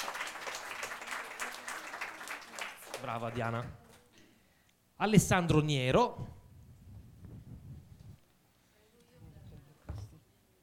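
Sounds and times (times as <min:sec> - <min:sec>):
faint applause from a group clapping for a person called up by name: 0:00.0 - 0:03.4
speech: 0:03.0 - 0:03.8, 0:05.0 - 0:06.4.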